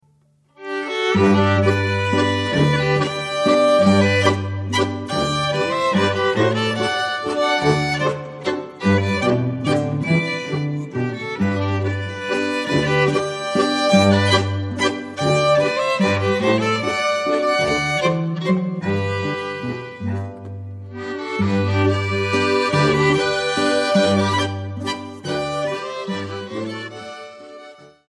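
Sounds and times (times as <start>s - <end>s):
landler dance music: 1.0s - 27.0s.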